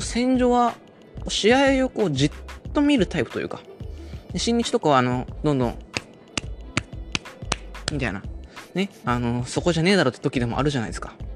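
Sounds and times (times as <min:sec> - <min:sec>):
speech: 0:00.1 - 0:03.7, 0:04.3 - 0:05.8, 0:07.9 - 0:11.3
rhythmic hand claps imitating a wrestling crowd: 0:05.8 - 0:08.0.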